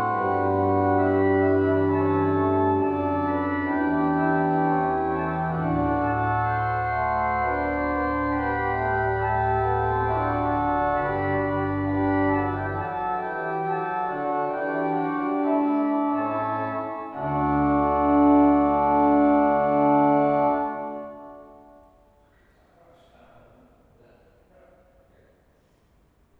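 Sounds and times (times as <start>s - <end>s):
fugue on electronic organ manual 2: 0.0s - 21.9s.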